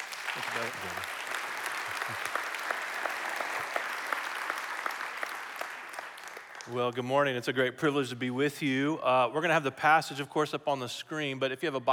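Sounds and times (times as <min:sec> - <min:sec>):
church congregation applause welcoming a speaker: 0:00.0 - 0:07.0
speech: 0:00.4 - 0:01.2, 0:02.1 - 0:02.5, 0:06.7 - 0:11.9.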